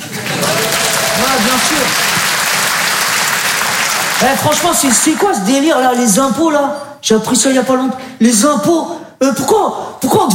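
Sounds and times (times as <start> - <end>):
crowd applause: 0.0 - 5.4
speech: 1.3 - 2.1, 4.2 - 10.3.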